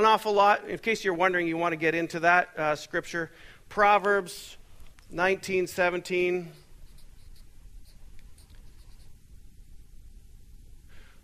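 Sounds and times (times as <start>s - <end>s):
speech: 0.0s - 6.6s
writing scratching: 6.5s - 9.2s
low hum: 6.5s - 11.2s.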